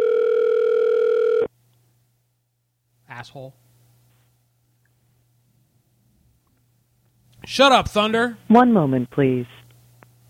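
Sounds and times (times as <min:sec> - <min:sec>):
telephone dial tone while redialing: 0:00.0 - 0:01.5
speech: 0:03.2 - 0:03.6, 0:07.5 - 0:09.6.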